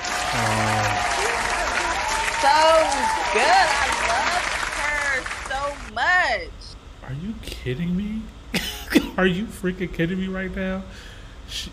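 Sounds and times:
applause: 0.0s - 5.9s
speech: 0.3s - 1.0s, 6.3s - 8.6s, 9.2s - 11.7s.

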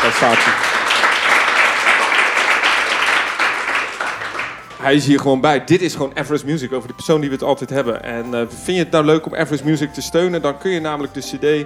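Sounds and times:
audience applause: 0.0s - 5.1s
speech: 0.1s - 0.8s, 4.8s - 11.6s.

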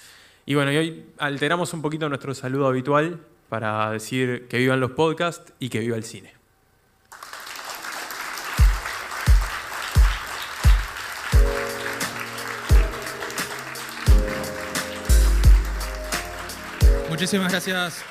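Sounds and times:
speech: 0.5s - 6.4s, 17.2s - 18.0s
audience applause: 7.1s - 18.0s.

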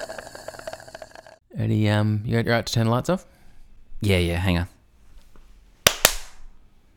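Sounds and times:
speech: 1.6s - 3.3s, 4.0s - 4.8s
double hand clap: 5.9s - 6.4s.

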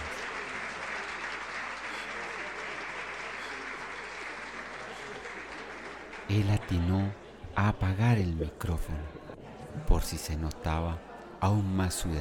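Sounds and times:
sustained applause from a sizable audience: 0.0s - 7.4s
speech: 6.3s - 12.2s.

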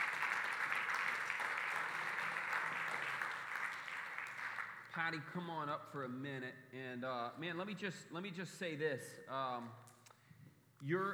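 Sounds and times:
audience applause: 0.0s - 4.8s
speech: 5.0s - 9.9s, 10.8s - 11.1s.

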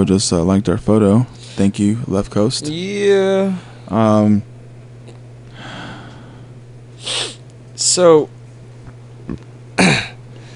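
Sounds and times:
speech: 0.0s - 4.5s, 7.8s - 8.4s
low hum: 0.0s - 10.5s
burp: 9.3s - 10.2s.

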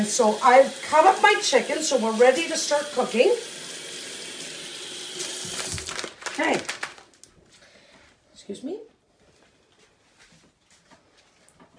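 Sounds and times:
speech: 0.0s - 3.6s, 6.4s - 6.7s, 8.5s - 8.9s
hands being washed: 0.0s - 6.2s.

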